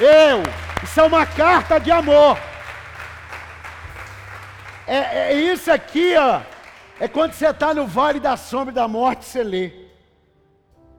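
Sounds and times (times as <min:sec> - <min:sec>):
speech: 0:00.0 - 0:02.5, 0:04.9 - 0:09.8
audience applause: 0:00.0 - 0:08.2.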